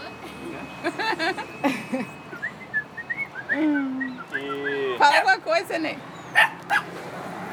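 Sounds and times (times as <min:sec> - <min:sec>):
laughter: 0:00.4 - 0:02.2
speech: 0:00.6 - 0:02.1, 0:05.2 - 0:06.8
man whistling a birdsong imitation: 0:02.4 - 0:04.9.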